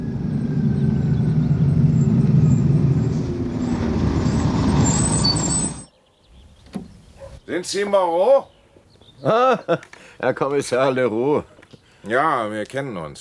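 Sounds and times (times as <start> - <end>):
bus from Amiens engine rumbling at its terminal stop: 0.0 - 5.9
speech: 7.5 - 8.5, 9.2 - 13.1.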